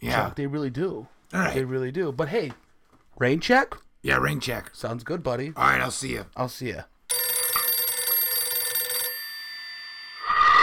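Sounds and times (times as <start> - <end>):
speech: 0.1 - 2.6, 3.2 - 6.9
telephone ringing with trilling electronic bell: 7.1 - 10.6.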